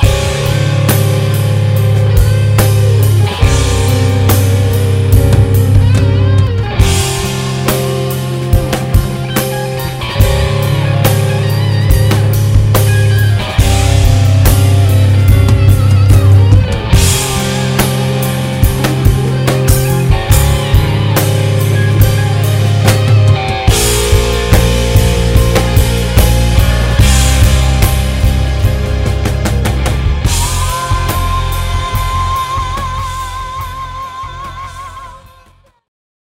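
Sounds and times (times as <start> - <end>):
rock band playing: 0.0 - 35.9.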